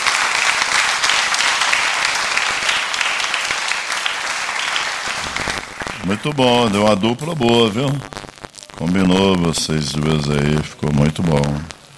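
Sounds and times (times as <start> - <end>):
audience applause: 0.0 - 7.8
speech: 6.1 - 8.2, 8.8 - 11.8.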